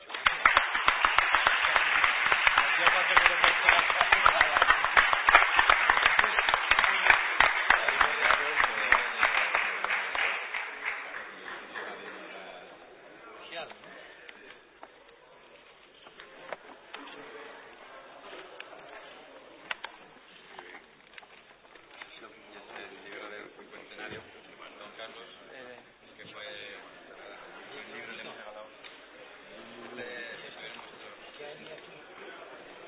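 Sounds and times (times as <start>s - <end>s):
audience applause: 0.0s - 12.6s
quiet murmuring: 1.2s - 32.8s.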